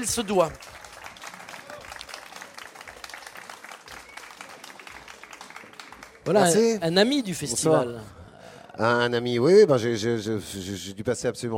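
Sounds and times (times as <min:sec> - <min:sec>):
speech: 0:00.0 - 0:00.8, 0:06.3 - 0:08.2, 0:08.8 - 0:11.5
audience applause welcoming a performer: 0:00.0 - 0:07.0.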